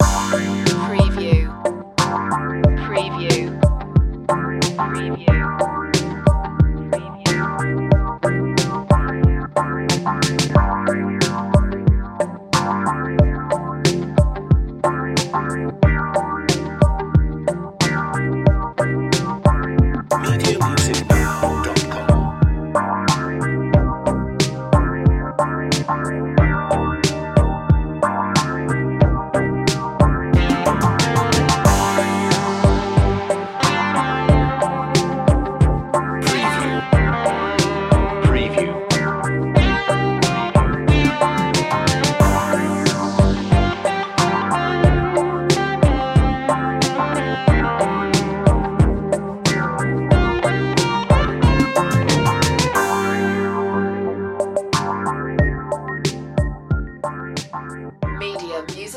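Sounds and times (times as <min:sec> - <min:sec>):
mellow retro music: 0:00.0 - 0:58.9.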